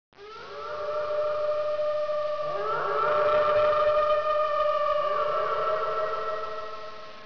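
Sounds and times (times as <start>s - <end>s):
wolf: 0.2s - 7.2s.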